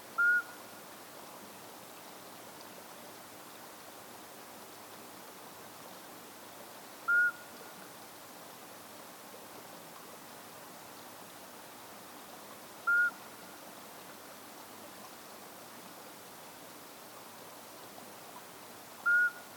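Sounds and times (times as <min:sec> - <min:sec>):
Iberian midwife toad Alytes cisternasii calling: 0:00.2 - 0:00.6, 0:07.1 - 0:07.5, 0:12.9 - 0:13.2, 0:19.1 - 0:19.5.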